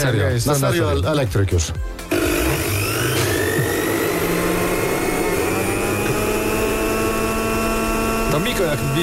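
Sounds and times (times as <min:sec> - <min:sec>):
speech: 0:00.0 - 0:02.3, 0:08.4 - 0:09.0
Thermomix kitchen appliance motor whining: 0:02.1 - 0:09.0.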